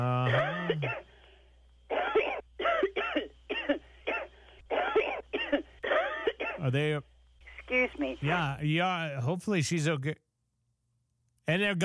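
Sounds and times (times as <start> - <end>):
speech: 0.0 - 1.1, 6.7 - 7.1, 7.7 - 10.2, 11.5 - 11.8
faint steady hum: 0.0 - 11.8
harsh throaty coughing on a voicemail recording: 0.1 - 1.1, 1.9 - 6.6.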